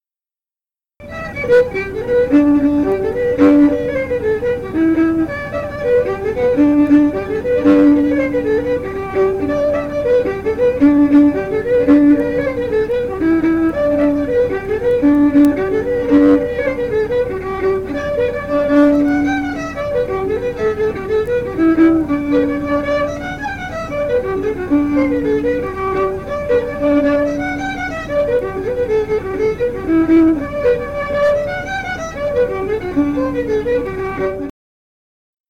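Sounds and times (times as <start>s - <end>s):
fiddle: 1.0s - 34.5s.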